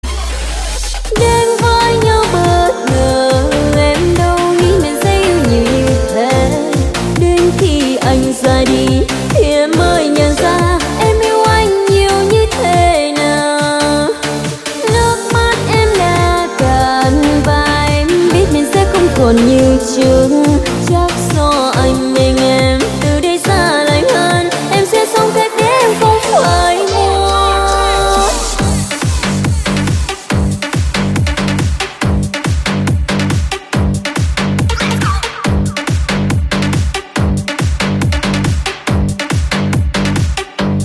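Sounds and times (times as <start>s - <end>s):
EDM remix: 0.0s - 40.7s.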